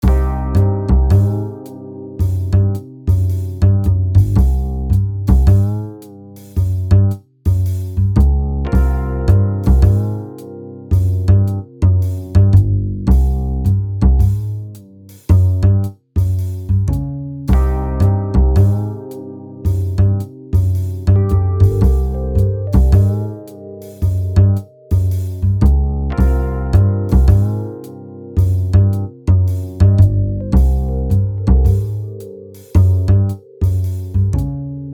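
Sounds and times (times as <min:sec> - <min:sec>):
jazz music: 0:00.0 - 0:34.9.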